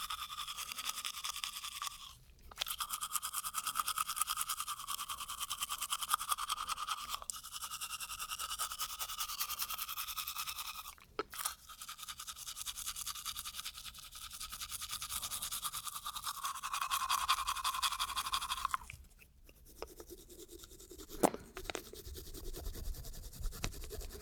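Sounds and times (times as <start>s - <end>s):
tooth brushing: 0.0s - 24.1s.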